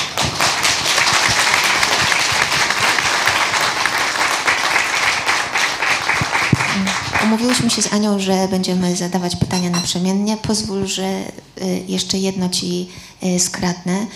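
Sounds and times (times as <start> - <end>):
audience applause: 0.0 - 7.6
speech: 7.3 - 14.1.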